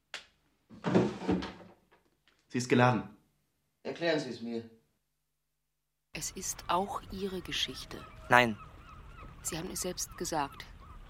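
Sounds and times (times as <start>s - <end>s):
nightstand drawer scraping open: 0.7s - 1.8s
speech: 2.5s - 3.2s, 3.9s - 4.8s, 6.2s - 8.7s, 9.4s - 10.7s.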